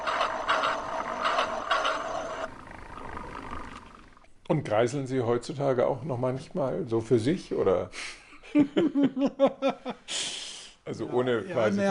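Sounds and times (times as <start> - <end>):
toy crossing barrier moving: 0.0 - 2.5
toy model train running in a circle: 0.0 - 2.5
speech: 4.5 - 10.3, 10.9 - 11.8.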